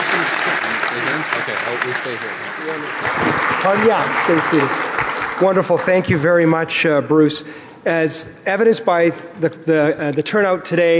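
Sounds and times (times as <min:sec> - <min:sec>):
audience applause: 0:00.0 - 0:06.3
speech: 0:00.4 - 0:10.9.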